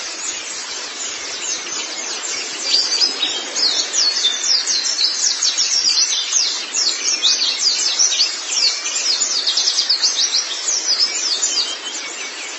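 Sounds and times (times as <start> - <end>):
white-eye chirping: 0.0 - 12.5.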